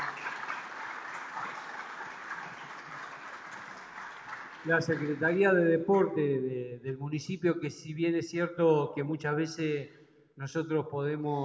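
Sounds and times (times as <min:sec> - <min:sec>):
audience applause: 0:00.0 - 0:05.4
speech: 0:04.6 - 0:11.4.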